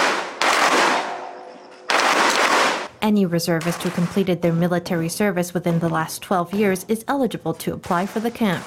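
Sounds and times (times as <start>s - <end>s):
T91 assault rifles firing live rounds at a reservist shooting camp: 0.0s - 2.9s
speech: 3.0s - 8.6s.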